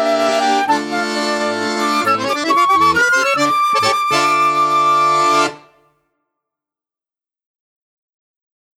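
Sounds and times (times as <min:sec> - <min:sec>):
accordion playing a fandango: 0:00.0 - 0:05.8
flute playing a fandango: 0:00.0 - 0:05.8.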